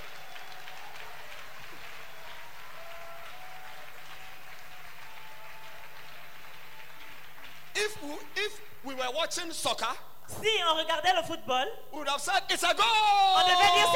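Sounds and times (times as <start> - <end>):
audience applauding: 0.0 - 8.2
speech: 7.9 - 13.9.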